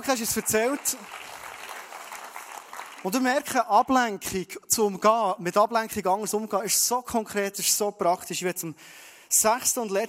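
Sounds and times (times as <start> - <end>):
speech: 0.0 - 1.4, 3.0 - 10.0
audience applause: 0.0 - 3.5.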